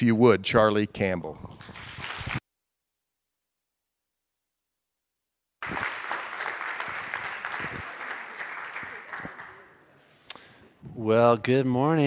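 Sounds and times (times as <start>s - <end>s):
speech: 0.0s - 1.8s, 11.0s - 12.0s
church gathering audience applause welcoming a speaker: 5.6s - 9.9s.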